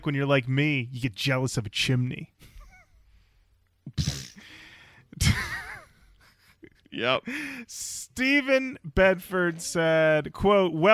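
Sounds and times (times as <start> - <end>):
speech: 0.0 - 2.5, 5.2 - 5.5, 6.9 - 10.9
person sneezing: 3.9 - 4.6.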